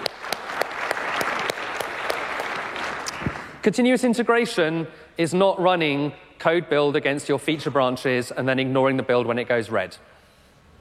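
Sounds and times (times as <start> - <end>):
audience applause: 0.0 - 3.6
speech: 3.6 - 10.2.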